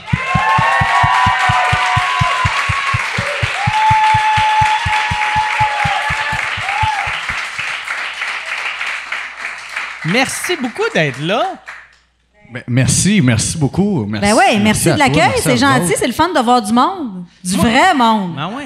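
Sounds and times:
cheers and high whistles: 0:00.0 - 0:07.4
steady rapid thumping beat: 0:00.0 - 0:07.8
audience applause: 0:00.0 - 0:11.9
speech: 0:10.1 - 0:11.7, 0:12.5 - 0:18.6.

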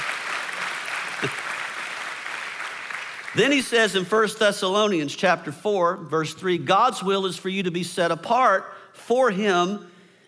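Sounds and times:
applause: 0:00.0 - 0:03.8
speech: 0:01.2 - 0:01.4, 0:03.4 - 0:09.9.

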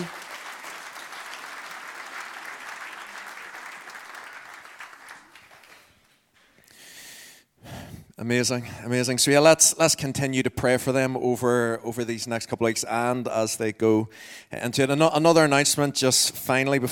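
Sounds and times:
audience applause: 0:00.0 - 0:06.1
speech: 0:08.2 - 0:16.9.

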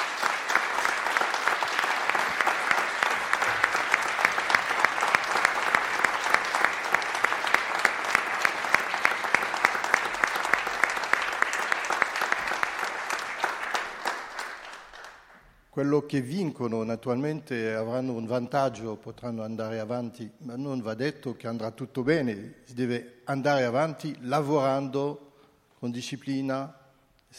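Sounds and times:
audience applause: 0:00.0 - 0:15.4
speech: 0:15.8 - 0:25.2, 0:25.8 - 0:27.3.

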